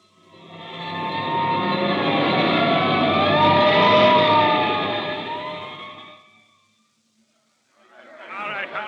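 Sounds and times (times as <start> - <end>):
hook-and-ladder fire engine siren wailing on the way to a fire: 0.4 - 6.5.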